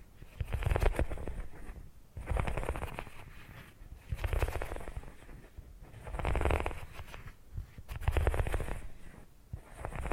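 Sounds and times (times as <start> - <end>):
tingly purring triggers: 0.4 - 1.4, 2.2 - 3.2, 4.1 - 5.1, 6.0 - 7.1, 7.9 - 9.0, 9.6 - 10.1.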